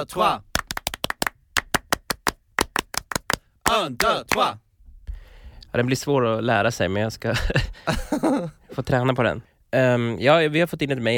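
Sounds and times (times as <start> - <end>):
speech: 0.0 - 0.5, 3.7 - 4.6, 5.7 - 11.1
studio hosts rhythmic French-style clapping: 0.5 - 4.5.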